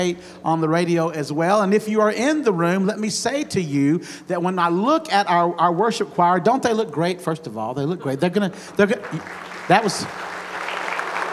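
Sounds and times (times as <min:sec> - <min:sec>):
speech: 0:00.0 - 0:10.3
audience clapping: 0:08.7 - 0:11.3.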